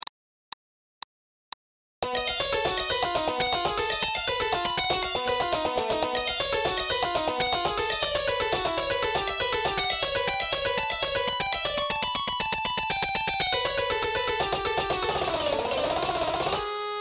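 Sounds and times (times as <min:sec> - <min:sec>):
fast picking exercises: 0:02.0 - 0:16.9.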